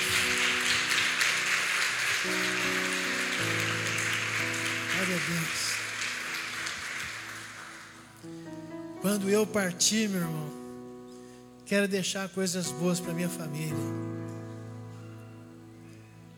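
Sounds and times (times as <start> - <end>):
crowd applauding: 0.0 - 8.4
speech: 5.1 - 5.7, 9.1 - 10.6, 11.7 - 14.2.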